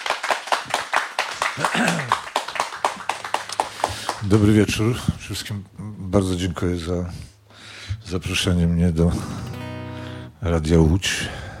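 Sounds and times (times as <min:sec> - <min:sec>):
audience applause for the guest: 0:00.0 - 0:04.4
speech: 0:01.6 - 0:02.3, 0:04.2 - 0:07.3, 0:08.1 - 0:09.5, 0:10.4 - 0:11.5.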